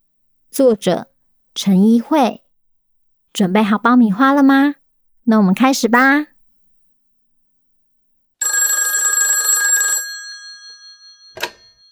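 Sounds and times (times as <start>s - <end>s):
speech: 0.6s - 2.4s, 3.3s - 6.3s
telephone bell ringing: 8.4s - 11.8s.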